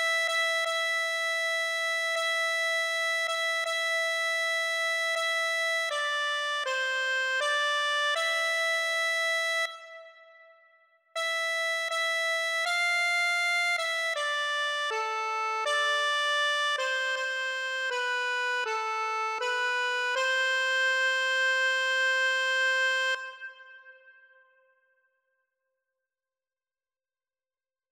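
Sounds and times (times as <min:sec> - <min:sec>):
accordion: 0:00.0 - 0:10.0, 0:11.2 - 0:23.4.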